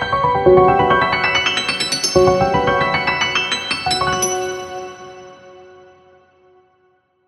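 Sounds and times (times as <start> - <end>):
melody: 0.1 - 5.3.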